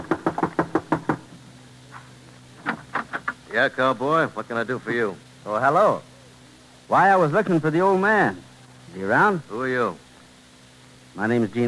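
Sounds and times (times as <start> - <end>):
knocking on a front door: 0.0 - 1.3
speech: 3.6 - 6.1, 6.9 - 10.0, 11.2 - 11.6.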